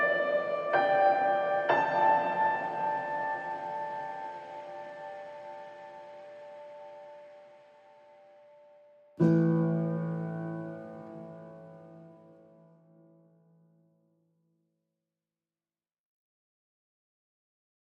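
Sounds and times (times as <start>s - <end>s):
pianos: 0.0s - 13.6s.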